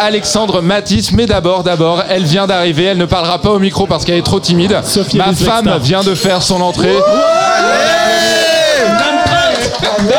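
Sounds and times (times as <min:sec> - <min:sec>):
speech: 0:00.0 - 0:09.1
audience applause and cheering: 0:06.8 - 0:10.1.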